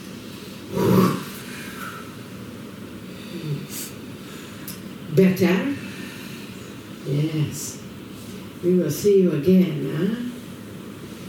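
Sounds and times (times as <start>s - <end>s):
deep breathing during a guided breathing exercise: 0.3s - 2.3s, 3.0s - 4.9s, 5.7s - 7.0s
speech: 5.1s - 5.8s, 7.1s - 7.9s, 8.6s - 10.3s.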